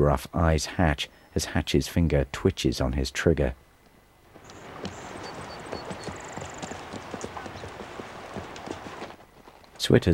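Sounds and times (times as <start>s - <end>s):
speech: 0.0s - 3.6s, 9.9s - 10.1s
horses' hooves clattering over rocky ground: 4.2s - 10.1s
faint high chirps: 4.4s - 6.8s.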